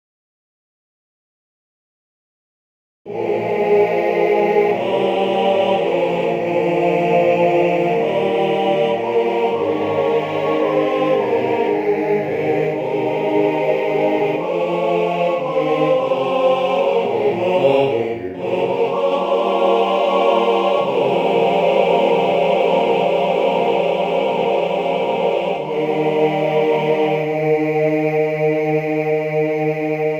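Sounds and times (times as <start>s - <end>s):
chorus singing: 3.1s - 30.1s.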